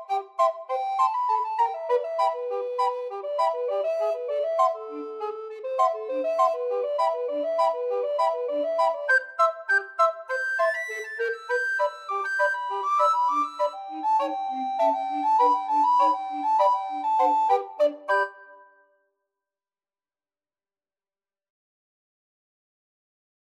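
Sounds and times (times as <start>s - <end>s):
recorder quartet: 0.0s - 18.4s.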